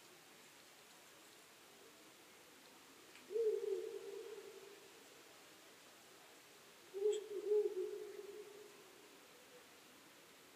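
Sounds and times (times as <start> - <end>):
owl hooting: 3.3 - 4.7, 6.9 - 8.9.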